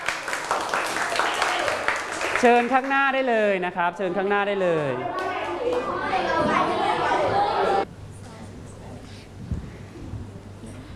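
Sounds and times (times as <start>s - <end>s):
children clapping for a group: 0.0s - 3.0s, 5.1s - 6.1s
speech: 2.4s - 6.4s
children chattering: 4.8s - 7.9s.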